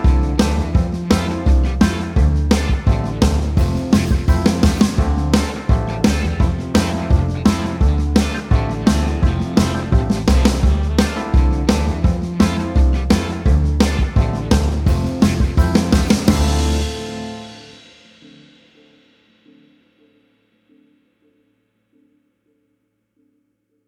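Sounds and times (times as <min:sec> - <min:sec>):
D minor chords in three steps with C: 0:00.0 - 0:18.6.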